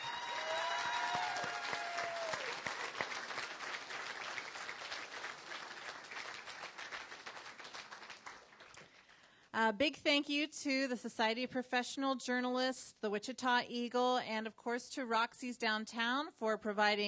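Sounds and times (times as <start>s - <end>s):
audience applause: 0.0s - 9.0s
speech: 9.6s - 17.0s.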